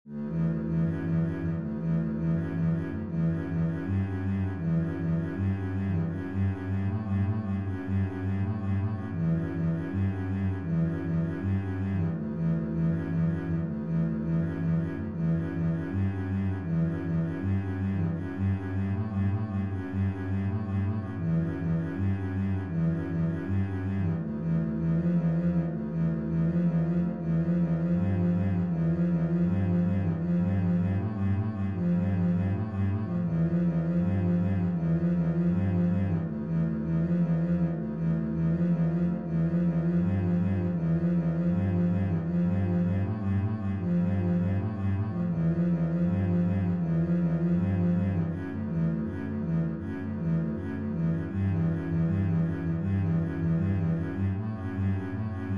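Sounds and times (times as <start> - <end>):
bass etude: 0.0 - 55.5.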